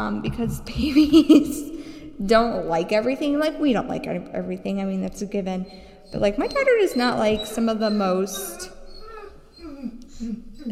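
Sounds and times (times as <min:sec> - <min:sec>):
speech: 0:00.0 - 0:08.8, 0:10.2 - 0:10.7
dog barking and yelping: 0:06.1 - 0:10.7.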